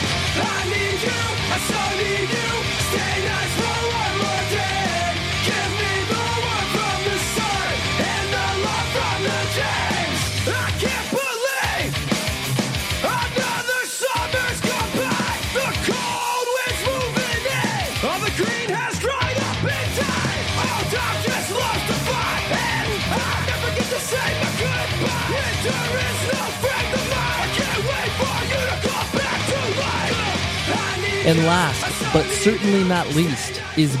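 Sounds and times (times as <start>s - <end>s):
hardcore punk song: 0.0s - 33.9s
speech: 31.3s - 33.9s.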